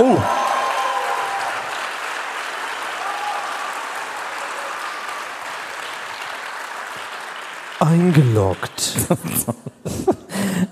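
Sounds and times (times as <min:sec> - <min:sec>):
speech: 0:00.0 - 0:00.4, 0:07.8 - 0:10.6
audience applause: 0:00.0 - 0:09.5.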